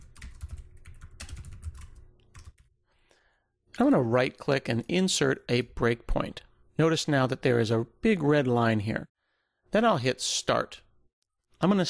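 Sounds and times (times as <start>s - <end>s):
typing code on a computer keyboard: 0.0s - 2.7s
speech: 3.8s - 9.1s, 9.7s - 10.8s, 11.6s - 11.8s.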